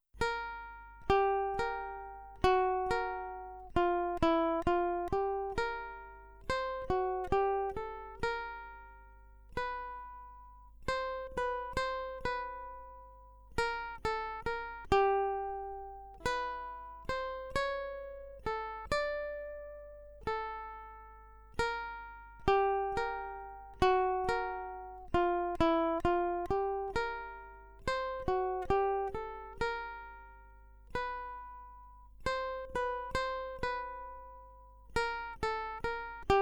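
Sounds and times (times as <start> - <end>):
ukulele accompaniment: 0.2 - 36.4.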